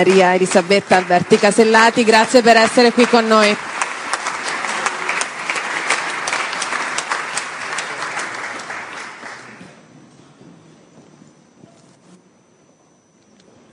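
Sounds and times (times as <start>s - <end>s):
speech: 0.0s - 3.7s
warm audience applause welcoming a government minister: 0.0s - 9.8s.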